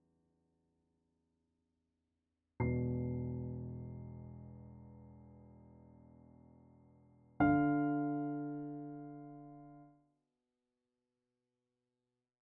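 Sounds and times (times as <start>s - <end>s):
slow piano music: 2.6s - 10.0s.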